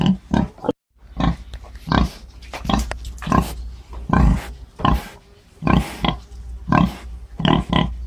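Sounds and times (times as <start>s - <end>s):
wild boar or domestic pig grunting: 0.0s - 8.0s.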